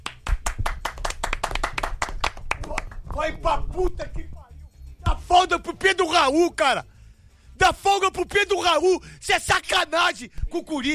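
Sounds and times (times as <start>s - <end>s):
hand clapping: 0.0s - 3.4s
speech: 3.2s - 4.3s, 5.3s - 6.9s, 7.6s - 10.9s.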